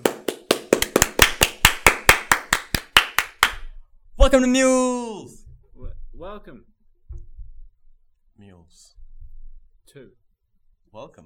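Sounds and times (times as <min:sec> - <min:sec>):
single hand clap: 0:00.0 - 0:03.7
speech: 0:04.2 - 0:05.4, 0:06.2 - 0:06.7, 0:08.4 - 0:09.0, 0:09.9 - 0:10.2, 0:10.9 - 0:11.2.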